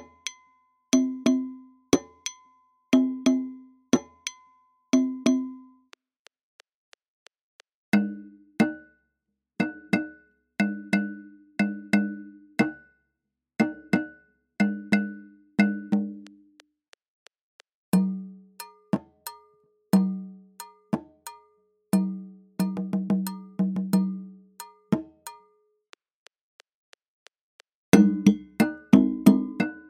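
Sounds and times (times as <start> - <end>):
African djabara rhythm at 90 bpm: 0.0 - 0.4, 1.0 - 5.7, 8.0 - 8.9, 9.6 - 12.9, 13.6 - 16.6, 18.0 - 25.5, 28.0 - 29.8.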